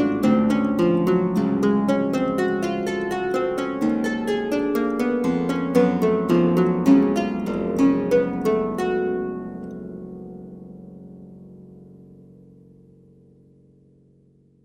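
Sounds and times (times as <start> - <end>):
theorbo and harpsichord playing a sarabande: 0.0 - 11.5.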